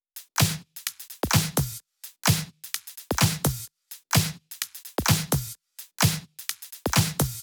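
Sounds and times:
drum loops: 0.2 - 7.4.

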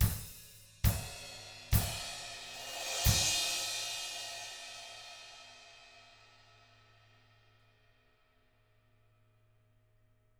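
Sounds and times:
drums: 0.0 - 6.6.

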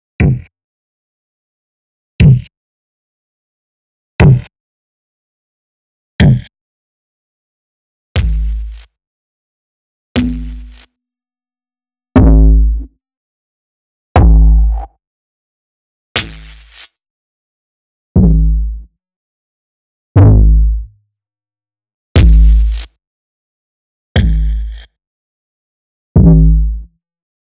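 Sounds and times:
Alesis Performance Pad kicks: 4.2 - 4.4, 6.2 - 6.5, 8.2 - 8.8, 10.2 - 10.9, 12.2 - 12.9, 14.2 - 14.9, 16.2 - 16.9, 18.2 - 18.8, 20.2 - 20.9, 22.2 - 22.9, 24.2 - 24.8, 26.2 - 26.9.

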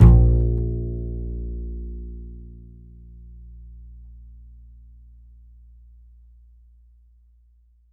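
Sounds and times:
upright acoustic bass A note: 0.0 - 4.2.

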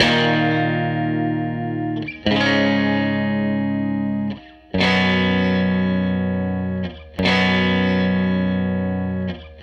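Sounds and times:
Strat guitar loop: 0.0 - 9.6.

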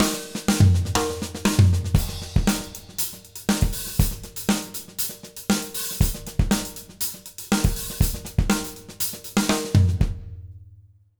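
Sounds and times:
J-rock drum loop: 0.0 - 10.6.

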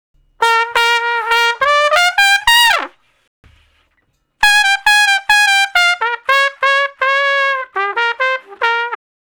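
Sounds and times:
trumpet playing slow blues in B flat: 0.4 - 3.0, 4.4 - 9.0.

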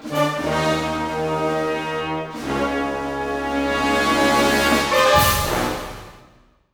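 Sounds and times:
full symphonic orchestra: 0.0 - 6.4.

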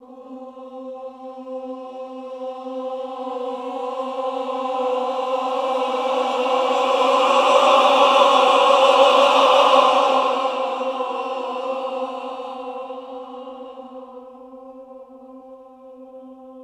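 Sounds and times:
choir: 0.0 - 16.6.

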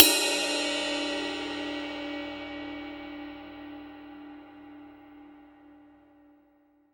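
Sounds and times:
dry ride cymbal: 0.0 - 4.2.

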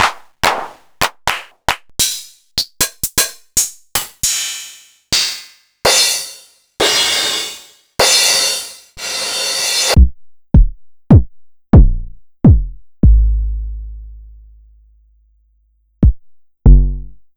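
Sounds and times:
Jomox Airbase990 drum machine: 0.0 - 13.2, 16.0 - 16.9.

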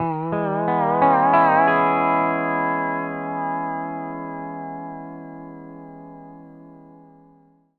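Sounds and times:
country music loop at 140 BPM: 0.0 - 4.7.

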